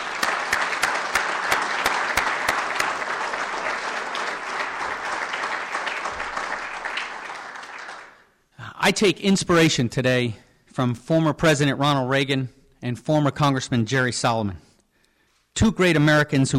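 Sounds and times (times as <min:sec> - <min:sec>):
round of applause: 0:00.0 - 0:08.4
speech: 0:08.9 - 0:14.7, 0:15.6 - 0:16.5.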